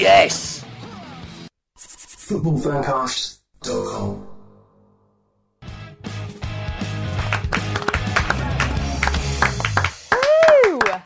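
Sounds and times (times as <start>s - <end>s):
speech: 0.0s - 0.5s, 2.3s - 4.2s
lively clapping: 7.0s - 11.0s.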